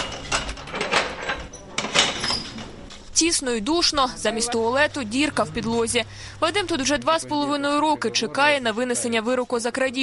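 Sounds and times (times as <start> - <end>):
heavy metal prison cell door unlocked and opened: 0.0 - 2.9
speech: 3.2 - 10.0.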